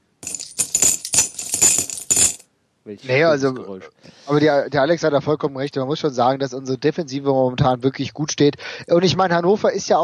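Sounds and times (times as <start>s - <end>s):
coins dropping into a Phrasenschwein swear-jar piggy bank: 0.2s - 2.4s
speech: 2.9s - 10.0s.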